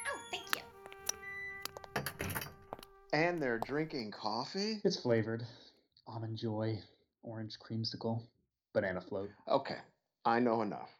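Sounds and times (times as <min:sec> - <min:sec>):
door being opened: 0:00.4 - 0:03.8
speech: 0:03.1 - 0:10.9.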